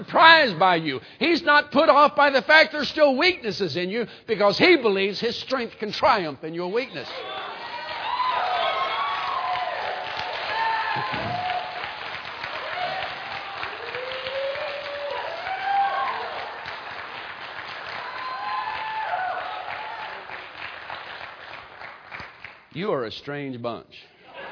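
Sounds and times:
speech: 0.0s - 7.4s, 22.8s - 24.1s
audience cheering and applauding: 7.1s - 22.6s.

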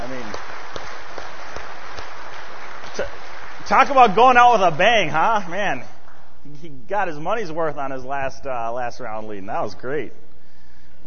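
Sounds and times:
church congregation applause for the worship team and pastor: 0.0s - 6.2s
speech: 3.0s - 10.2s.

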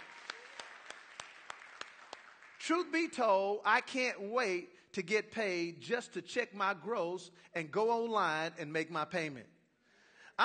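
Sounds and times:
audience hand clapping: 0.0s - 3.0s
speech: 2.7s - 9.6s.

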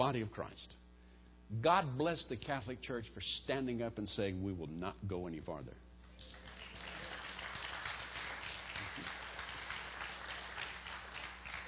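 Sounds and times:
speech: 0.0s - 0.8s, 1.5s - 5.8s
audience applause: 6.1s - 11.6s.

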